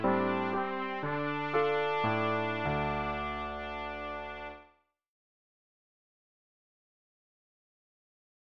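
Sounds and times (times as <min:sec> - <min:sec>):
trumpet solo of a folk ballad: 0:00.0 - 0:04.7.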